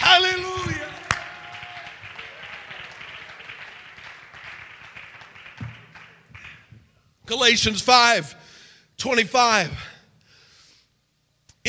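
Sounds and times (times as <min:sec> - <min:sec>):
audience shouting: 0:00.0 - 0:03.6
audience clapping: 0:00.0 - 0:07.0
speech: 0:07.4 - 0:08.4, 0:09.0 - 0:09.9.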